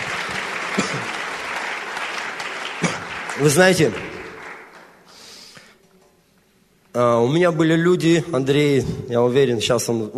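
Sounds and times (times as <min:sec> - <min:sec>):
audience applause: 0:00.0 - 0:05.4
speech: 0:03.4 - 0:04.1, 0:07.0 - 0:10.1.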